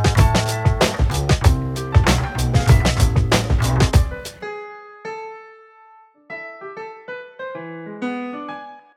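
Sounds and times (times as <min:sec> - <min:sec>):
music beat: 0:00.0 - 0:04.4.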